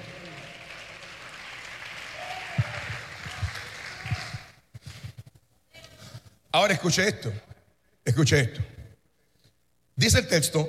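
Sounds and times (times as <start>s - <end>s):
audience applause: 0.0s - 4.6s
speech: 6.6s - 7.5s, 8.2s - 8.7s, 10.0s - 10.6s.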